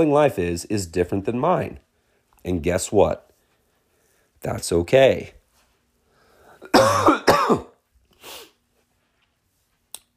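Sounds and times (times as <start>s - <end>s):
speech: 0.0s - 1.8s, 2.4s - 3.3s, 4.4s - 5.4s
throat clearing and coughing from bad allergies: 6.6s - 7.8s.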